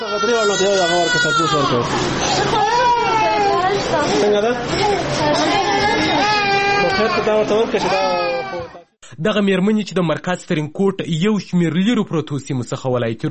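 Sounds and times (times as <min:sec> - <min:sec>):
babies and young children sick with diarrhea crying in a hospital ward in Tarinkot: 0:00.0 - 0:08.9
speech: 0:00.2 - 0:02.8, 0:03.7 - 0:08.3, 0:09.1 - 0:13.3.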